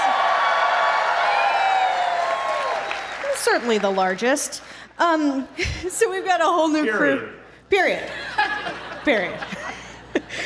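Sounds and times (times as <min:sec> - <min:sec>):
live audience at the Warner Theater in Washington, D.C. cheering and whooping: 0:00.0 - 0:03.6
speech: 0:03.4 - 0:08.3, 0:09.0 - 0:09.6
laughter: 0:08.1 - 0:10.4.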